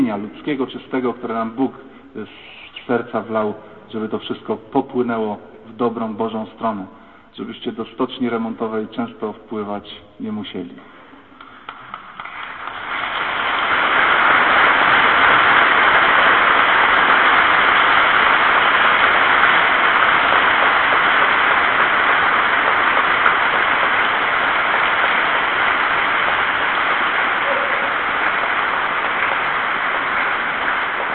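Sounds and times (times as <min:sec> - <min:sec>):
speech: 0:00.1 - 0:11.0
audience applause: 0:11.4 - 0:31.1.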